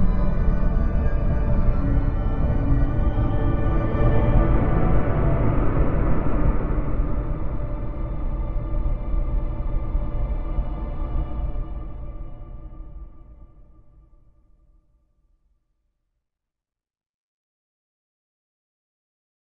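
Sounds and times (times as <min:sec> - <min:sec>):
eerie orchestral horror music: 0:00.0 - 0:13.8.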